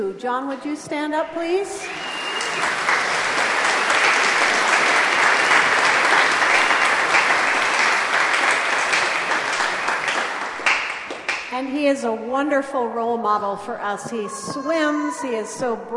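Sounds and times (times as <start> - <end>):
speech: 0.0 - 3.2, 11.6 - 15.9
crowd clapping: 1.8 - 11.6.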